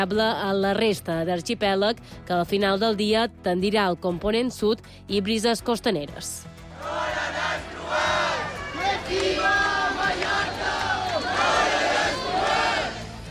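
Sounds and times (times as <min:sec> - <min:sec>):
speech: 0:00.0 - 0:08.3
protest crowd against mass tourism in central Palma, Mallorca: 0:06.7 - 0:13.3.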